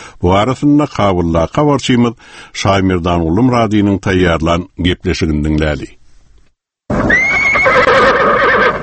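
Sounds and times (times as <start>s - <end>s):
speech: 0.2s - 6.0s
horse from the Afghan president's stable in Kabul neighing: 6.9s - 8.8s.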